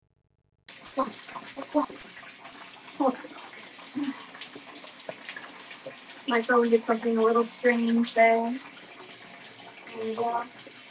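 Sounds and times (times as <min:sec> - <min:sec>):
running water while washing with soap: 0:00.7 - 0:10.8
speech: 0:06.3 - 0:08.7, 0:10.1 - 0:10.6.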